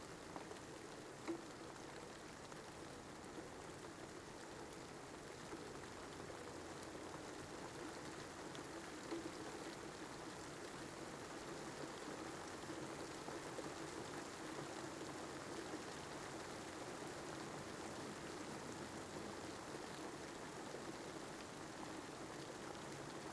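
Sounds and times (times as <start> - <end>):
rain heard inside a car: 0.1 - 23.3.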